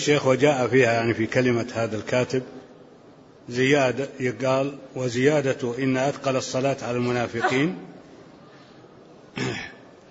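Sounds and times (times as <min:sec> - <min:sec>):
speech: 0:00.0 - 0:02.6, 0:03.5 - 0:07.9
sneeze: 0:09.3 - 0:09.8.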